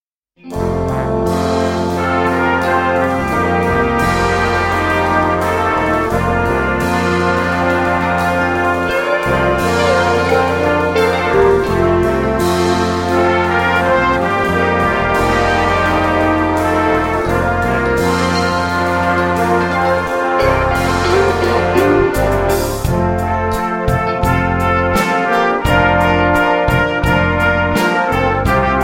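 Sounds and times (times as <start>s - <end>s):
brass ensemble: 0.4s - 28.8s.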